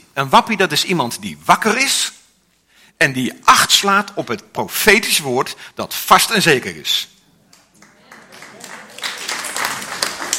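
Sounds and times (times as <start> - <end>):
speech: 0.2 - 2.2, 3.0 - 7.2
audience clapping: 7.5 - 10.3.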